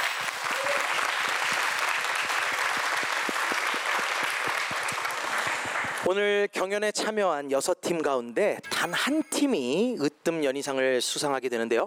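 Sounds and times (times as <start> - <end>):
audience applause of encouragement: 0.0 - 6.1
speech: 6.1 - 11.8.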